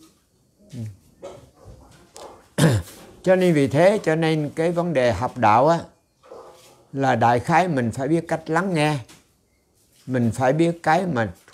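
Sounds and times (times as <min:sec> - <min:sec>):
speech: 0:00.8 - 0:01.0, 0:03.2 - 0:05.9, 0:06.9 - 0:09.1, 0:10.1 - 0:11.4
dog barking: 0:01.2 - 0:02.4, 0:06.2 - 0:06.8.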